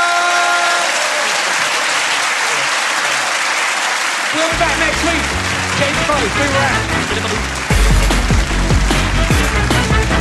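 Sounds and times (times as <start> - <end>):
faint cheers: 0.0 - 5.8
live comedy audience applause: 0.0 - 10.1
speech: 4.5 - 7.6.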